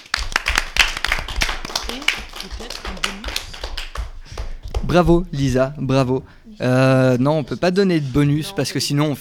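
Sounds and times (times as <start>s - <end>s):
audience applause and clapping: 0.0s - 5.6s
speech: 1.9s - 3.4s, 4.9s - 9.1s.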